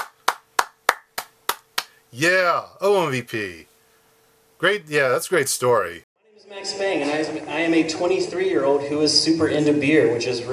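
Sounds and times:
audience clapping: 0:00.0 - 0:02.0
faint steady hum: 0:00.0 - 0:10.5
speech: 0:02.2 - 0:03.7, 0:04.6 - 0:10.5.

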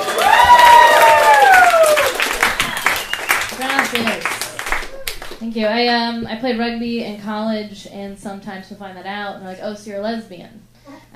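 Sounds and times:
audience applause: 0:00.0 - 0:05.4
speech: 0:05.5 - 0:11.1.

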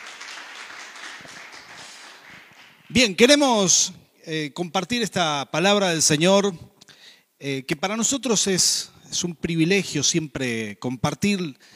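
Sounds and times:
audience applause: 0:00.0 - 0:02.9
speech: 0:02.9 - 0:06.7, 0:07.4 - 0:11.7.

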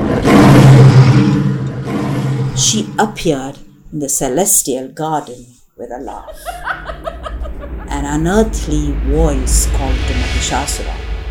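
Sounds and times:
lion roaring: 0:00.0 - 0:02.7
speech: 0:02.6 - 0:11.1
laughter: 0:06.1 - 0:08.2.

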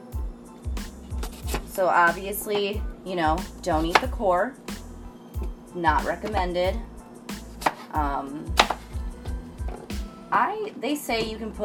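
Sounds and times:
knife chopping green apple into pieces on a board: 0:01.2 - 0:01.7, 0:03.7 - 0:04.2, 0:07.3 - 0:07.9, 0:08.5 - 0:09.0
speech: 0:01.8 - 0:04.6, 0:05.8 - 0:06.9, 0:07.9 - 0:08.6, 0:10.3 - 0:11.6.

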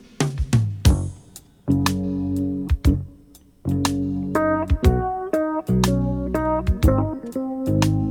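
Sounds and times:
digital remaster music with percussion, bass and keyboard: 0:00.0 - 0:08.0.

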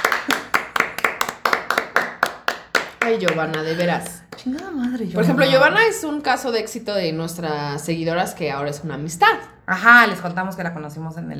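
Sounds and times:
hand clapping: 0:00.0 - 0:05.3
speech: 0:03.1 - 0:11.3.

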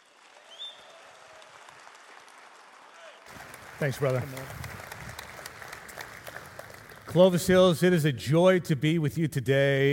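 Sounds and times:
audience applause welcoming a guest speaker at a church service: 0:00.0 - 0:07.8
speech: 0:03.8 - 0:04.7, 0:07.1 - 0:09.9.

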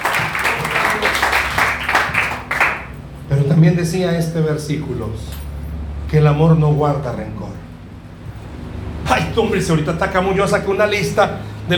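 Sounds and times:
audience applause: 0:00.0 - 0:03.0
speech: 0:03.6 - 0:05.4, 0:06.1 - 0:07.7, 0:09.4 - 0:11.7.

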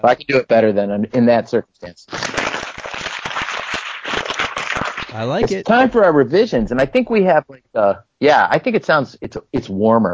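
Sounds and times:
speech: 0:00.0 - 0:02.4, 0:05.1 - 0:10.1
paper being crumpled: 0:02.1 - 0:05.2.

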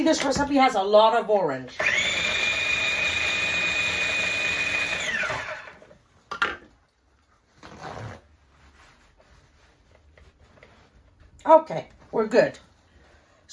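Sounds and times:
speech: 0:00.1 - 0:02.1, 0:11.5 - 0:12.7
food processor pulsing: 0:01.8 - 0:05.9
brief rustling noise: 0:07.1 - 0:13.5.

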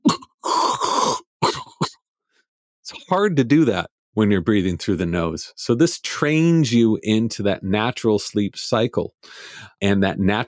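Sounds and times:
person imitating snoring: 0:00.0 - 0:01.3
speech: 0:03.1 - 0:10.4.

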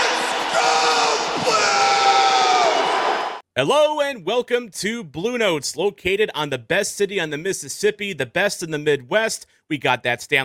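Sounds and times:
large hockey crowd chanting a team chant: 0:00.0 - 0:03.4
speech: 0:03.6 - 0:10.4.

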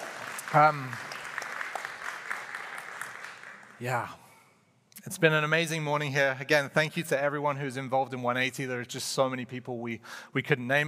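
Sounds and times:
crowd clapping: 0:00.0 - 0:04.2
speech: 0:00.5 - 0:01.1, 0:03.8 - 0:04.2, 0:05.0 - 0:10.8.

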